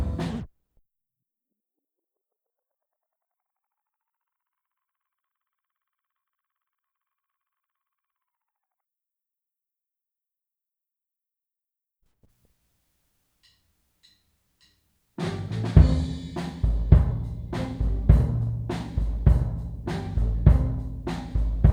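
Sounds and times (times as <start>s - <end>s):
kick drum: 15.8s - 21.7s.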